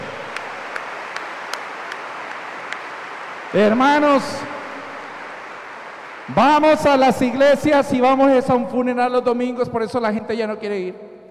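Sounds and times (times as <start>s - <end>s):
audience applauding: 0.0s - 8.0s
speech: 3.5s - 4.6s, 6.3s - 11.1s.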